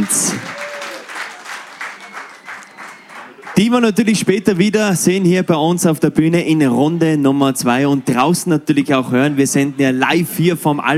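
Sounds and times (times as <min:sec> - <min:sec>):
speech: 0:00.0 - 0:00.6, 0:03.6 - 0:10.9
audience applause: 0:00.0 - 0:03.8.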